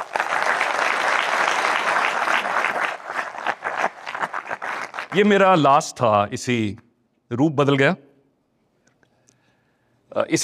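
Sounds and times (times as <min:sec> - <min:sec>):
auditorium audience applauding the institute: 0:00.0 - 0:05.5
speech: 0:05.1 - 0:08.0, 0:10.1 - 0:10.4.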